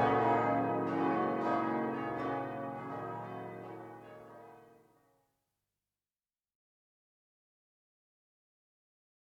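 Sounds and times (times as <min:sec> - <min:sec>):
abbey church bells ringing in Siegburg: 0:00.0 - 0:04.7.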